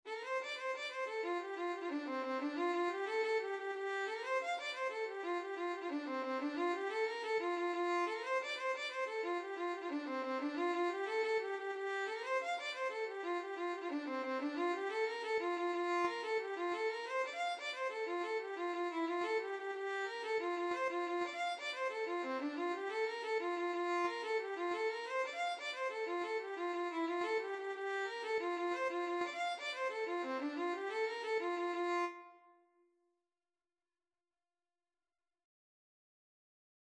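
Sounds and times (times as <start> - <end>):
violin: 0.1 - 32.5.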